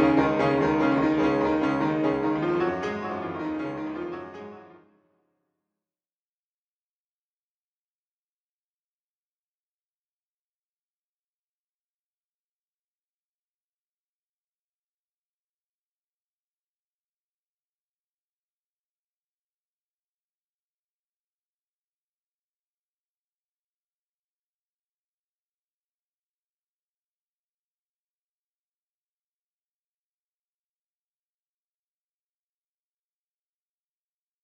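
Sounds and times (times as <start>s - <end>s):
pianists playing piano: 0.0s - 5.0s.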